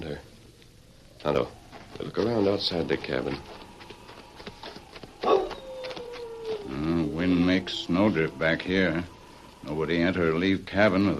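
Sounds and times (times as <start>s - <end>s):
speech: 1.2s - 3.6s, 7.2s - 11.1s
dog whimpering: 5.2s - 8.6s.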